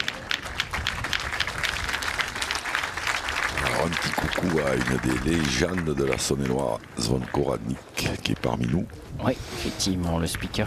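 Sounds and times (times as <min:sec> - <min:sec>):
audience applauding: 0:00.0 - 0:07.6
speech: 0:04.0 - 0:10.6.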